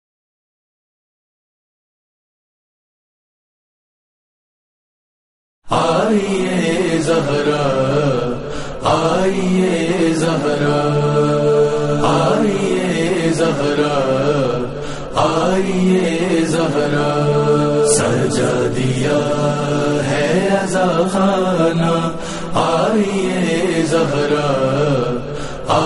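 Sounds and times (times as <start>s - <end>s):
noha lament recitation: 5.7s - 25.8s.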